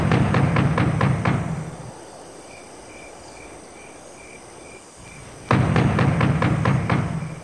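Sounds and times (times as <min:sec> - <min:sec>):
knocking on a door: 0:00.0 - 0:01.5, 0:05.5 - 0:07.4.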